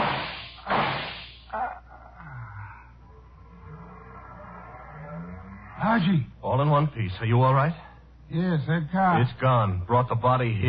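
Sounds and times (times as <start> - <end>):
gunshots fired from a window: 0.0 - 1.4
speech: 5.9 - 10.6.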